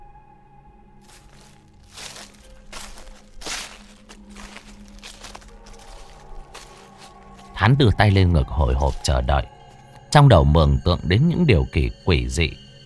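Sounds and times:
footsteps crunching on dry leaves: 1.0s - 9.7s
speech: 7.6s - 12.6s.

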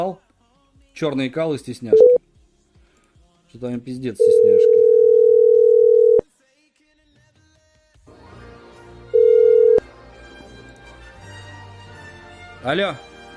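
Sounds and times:
speech: 0.0s - 0.2s, 1.0s - 2.2s, 3.5s - 4.8s, 12.6s - 13.1s
telephone ringback tone while calling a number: 1.9s - 2.2s, 4.2s - 6.2s, 9.2s - 9.8s.

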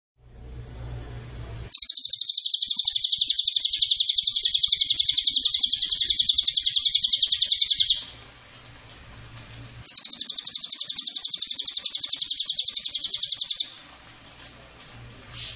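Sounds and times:
cililin giving a fast high dry pulsed trill: 1.7s - 8.2s, 9.9s - 13.8s.

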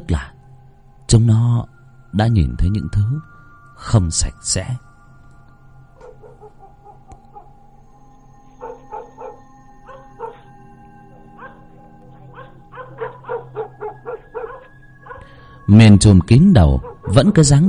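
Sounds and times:
speech: 0.1s - 0.4s, 1.1s - 4.9s, 15.7s - 17.6s
village dogs howling: 5.8s - 15.7s, 16.4s - 17.6s
village dogs barking: 6.0s - 7.7s, 8.4s - 15.4s, 16.6s - 17.6s.

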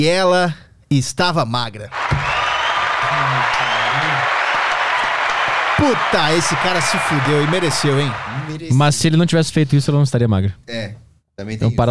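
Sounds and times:
speech: 0.0s - 2.4s, 5.8s - 11.8s
played applause sound effect: 1.9s - 9.0s.

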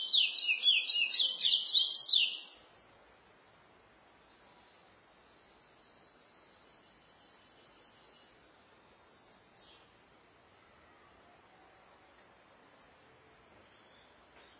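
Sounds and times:
chestnut-bellied seed finch singing: 0.0s - 2.6s.

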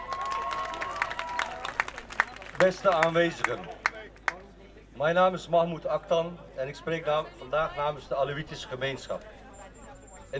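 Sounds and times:
scattered clapping welcoming a speaker at a demonstration: 0.0s - 4.4s
demonstration crowd noise: 0.0s - 10.3s
speech: 2.6s - 3.8s, 5.0s - 9.4s.

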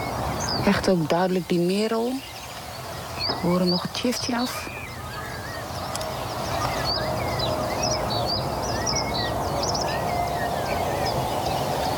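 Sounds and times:
low hiss: 0.0s - 11.9s
reed bunting singing: 0.0s - 11.9s
speech: 0.6s - 2.3s, 3.3s - 4.8s.

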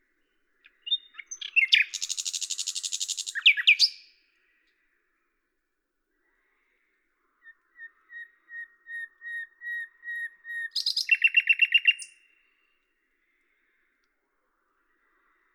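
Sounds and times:
common nightingale singing at Lavours in France: 0.2s - 4.8s, 6.2s - 12.8s.

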